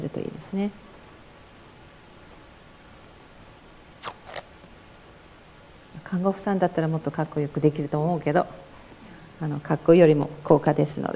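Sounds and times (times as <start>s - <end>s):
speech: 0.0s - 0.9s, 6.1s - 8.7s, 9.4s - 11.1s
tape being pulled off a roll: 4.0s - 4.5s.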